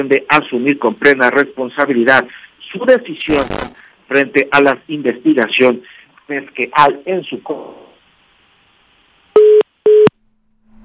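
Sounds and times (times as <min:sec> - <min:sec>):
speech: 0:00.0 - 0:07.9
telephone busy tone after a call is cut off: 0:09.4 - 0:10.1.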